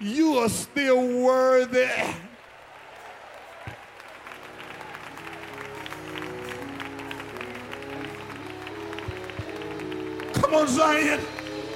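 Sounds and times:
speech: 0.0s - 2.2s, 10.6s - 11.3s
audience clapping: 2.0s - 11.7s.

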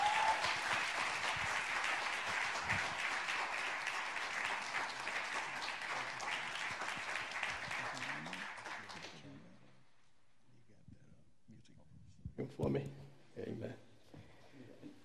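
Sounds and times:
audience applause welcoming a speaker at an evening church gathering: 0.0s - 9.2s.

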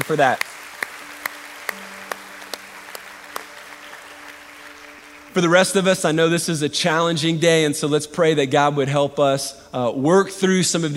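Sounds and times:
slow hand claps: 0.0s - 5.4s
speech: 0.1s - 0.5s, 5.4s - 10.9s.

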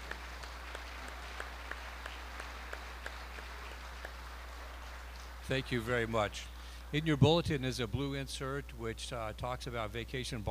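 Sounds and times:
audience applause: 0.0s - 6.4s
speech: 5.5s - 10.4s.

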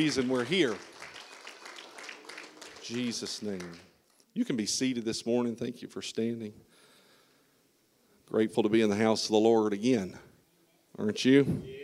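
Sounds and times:
speech: 0.0s - 1.0s, 2.9s - 6.7s, 8.3s - 10.3s, 11.0s - 11.8s
audience hand clapping: 0.0s - 4.2s.

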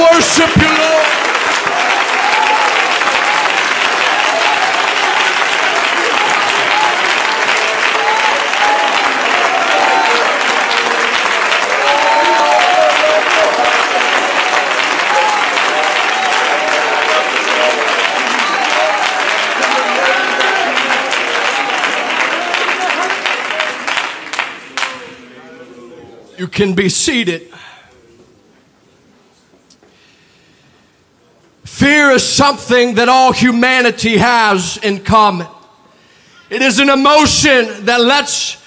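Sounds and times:
scattered voices and cheers: 0.0s - 24.2s
loud applause from a large crowd: 0.0s - 25.6s
speech: 0.3s - 1.0s, 26.6s - 27.7s, 32.1s - 35.6s, 36.5s - 38.6s.

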